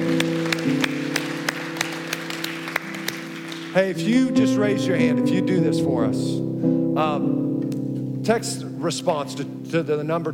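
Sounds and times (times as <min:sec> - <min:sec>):
audience applause: 0:00.0 - 0:03.8
speech: 0:03.7 - 0:07.4, 0:08.2 - 0:10.3.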